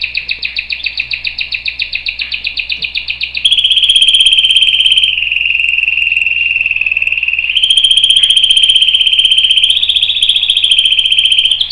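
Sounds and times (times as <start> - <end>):
domestic canary song: 0.0 - 11.6.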